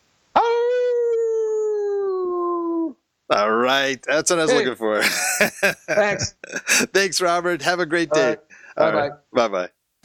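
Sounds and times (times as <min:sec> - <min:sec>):
person imitating a dog howl: 0:00.3 - 0:03.0
speech: 0:03.3 - 0:10.0.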